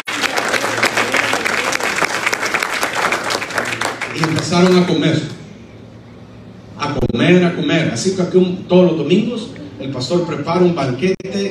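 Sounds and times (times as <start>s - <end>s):
applause: 0.0s - 5.0s
speech: 4.5s - 5.4s, 6.9s - 11.4s.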